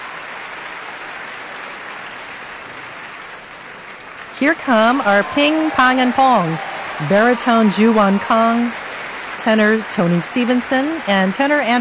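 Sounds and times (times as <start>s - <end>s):
crowd applauding: 0.0s - 11.7s
speech: 4.4s - 8.8s, 9.4s - 11.7s.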